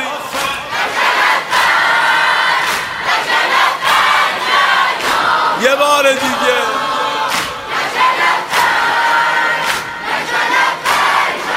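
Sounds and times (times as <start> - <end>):
mourners chanting responses in unison: 0.0 - 11.5
speech: 5.7 - 6.8.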